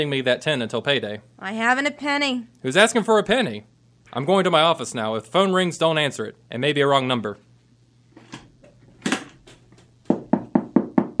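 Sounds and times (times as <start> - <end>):
speech: 0.0 - 7.5
firm knocking on a door: 10.1 - 11.1.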